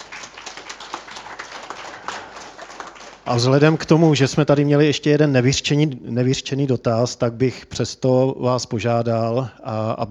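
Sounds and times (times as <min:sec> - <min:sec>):
audience applause: 0:00.0 - 0:04.0
speech: 0:03.3 - 0:10.0.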